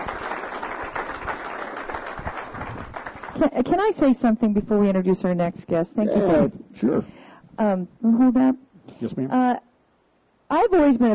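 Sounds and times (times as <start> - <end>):
audience applause: 0.0 - 3.5
speech: 3.4 - 9.7, 10.5 - 11.1.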